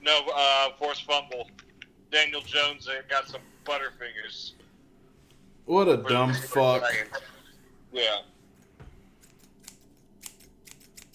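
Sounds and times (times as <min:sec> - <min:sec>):
speech: 0:00.1 - 0:04.6, 0:05.7 - 0:08.3
scissors snipping: 0:09.2 - 0:11.1.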